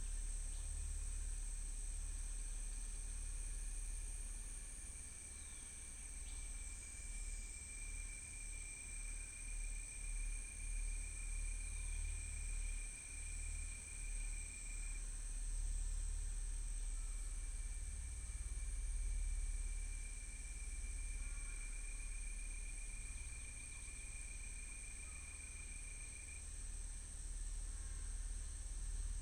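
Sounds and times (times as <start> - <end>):
soft crickets chirping: 0.0 - 29.2.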